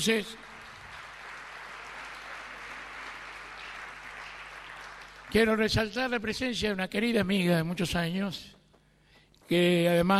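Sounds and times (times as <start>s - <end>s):
speech: 0.0s - 0.5s, 5.3s - 8.6s, 9.5s - 10.1s
audience applause: 0.0s - 5.7s.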